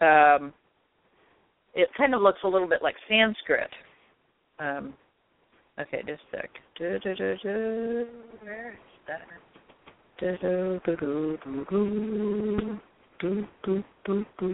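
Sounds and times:
speech: 0.0 - 0.6, 1.8 - 3.9, 4.6 - 5.0, 5.8 - 9.5, 10.2 - 14.5
person humming while chanting: 6.8 - 9.2, 10.2 - 14.5.

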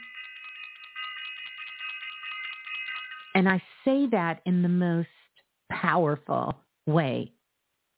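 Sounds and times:
bell ringing: 0.0 - 3.6
speech: 3.4 - 7.4.

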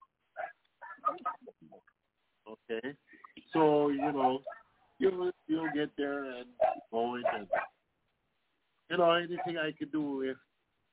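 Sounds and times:
dog giving short yappy barks and whimpery yips: 0.4 - 1.5, 3.9 - 4.8, 5.6 - 5.9, 6.5 - 7.8, 9.4 - 9.6
speech: 2.7 - 7.7, 8.9 - 10.5.

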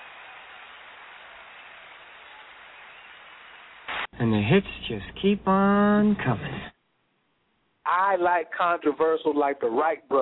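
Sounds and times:
audience applause: 0.0 - 5.4
speech: 4.2 - 6.7, 7.9 - 10.2.

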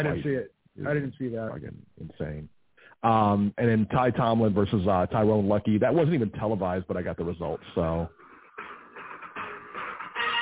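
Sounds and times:
speech: 0.0 - 8.7
mobile phone ringing or buzzing: 9.0 - 10.3.

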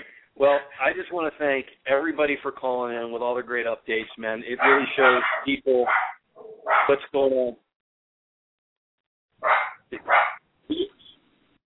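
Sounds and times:
speech: 0.4 - 6.1, 6.9 - 7.6
dog barking: 4.6 - 7.0, 9.4 - 10.4.

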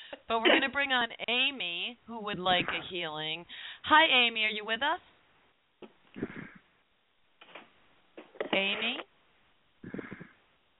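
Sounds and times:
speech: 0.3 - 5.1, 8.6 - 9.1
snoring: 6.2 - 6.6, 9.8 - 10.4.

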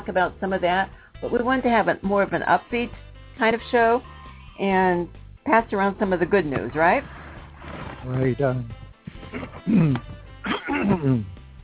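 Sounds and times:
speech: 0.1 - 7.2, 8.0 - 10.1, 10.7 - 11.4
person coughing: 9.3 - 11.3
person clearing throat: 9.3 - 11.4.

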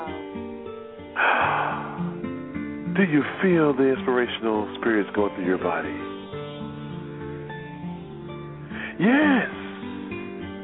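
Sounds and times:
music with steady tones: 0.0 - 10.6
loud airy breath: 1.2 - 2.2, 8.6 - 10.1
speech: 3.0 - 6.1, 9.0 - 9.6.

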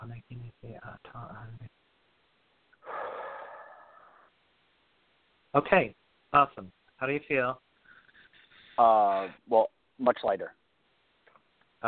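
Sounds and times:
deep breath exhaled out through the mouth during a guided breathing exercise: 2.8 - 4.3
speech: 5.5 - 7.6, 8.8 - 10.6.

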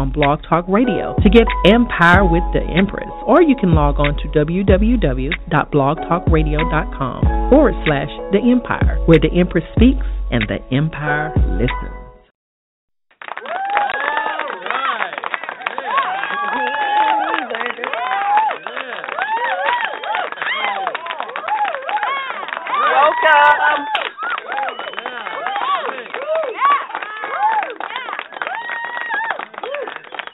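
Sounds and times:
speech: 0.0 - 12.0
clapping: 13.2 - 30.3.

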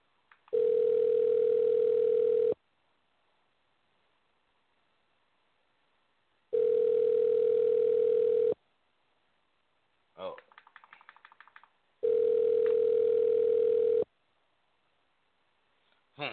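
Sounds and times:
buzzy phone ringback tone: 0.5 - 2.6, 6.5 - 8.6, 12.0 - 14.1.

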